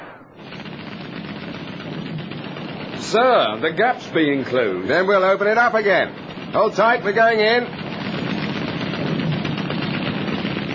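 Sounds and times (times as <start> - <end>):
machine gun fire: 0.0 - 10.7
speech: 3.0 - 7.8.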